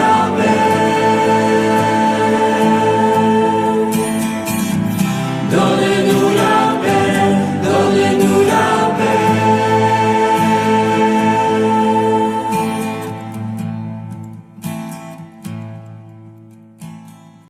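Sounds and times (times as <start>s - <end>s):
choral mass music: 0.0s - 13.8s.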